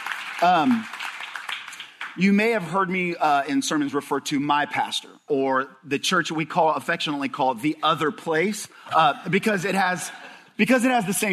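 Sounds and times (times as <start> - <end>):
audience clapping: 0.0 - 2.7
speech: 0.4 - 1.0, 2.2 - 11.3.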